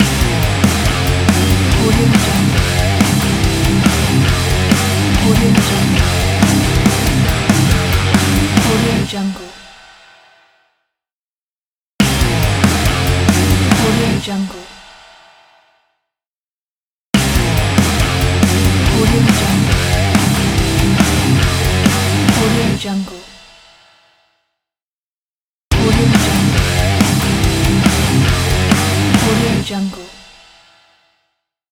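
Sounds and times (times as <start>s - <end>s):
heavy metal guitar slide logo: 0.0s - 9.2s, 12.0s - 14.3s, 17.2s - 22.8s, 25.7s - 29.7s.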